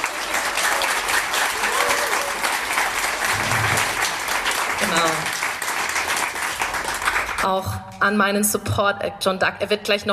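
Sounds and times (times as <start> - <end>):
crowd applauding: 0.0 - 7.7
speech: 7.4 - 10.1.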